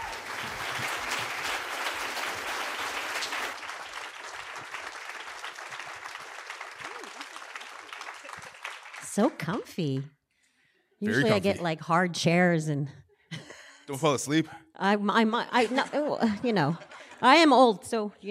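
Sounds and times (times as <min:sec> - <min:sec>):
audience applause: 0:00.0 - 0:09.4
speech: 0:09.2 - 0:10.2, 0:11.0 - 0:13.0, 0:13.9 - 0:18.2
laughter: 0:15.5 - 0:17.4.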